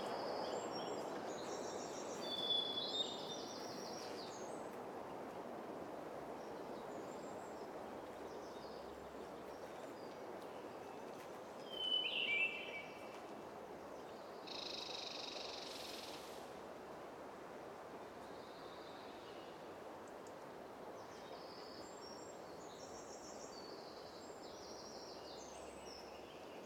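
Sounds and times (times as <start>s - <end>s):
woods ambience: 0.0s - 26.6s.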